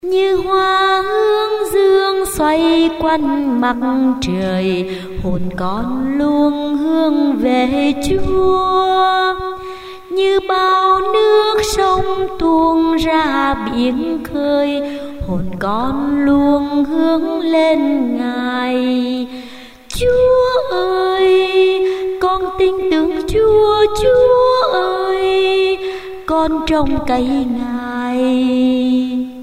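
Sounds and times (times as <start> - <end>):
soprano voice: 0.0 - 29.4.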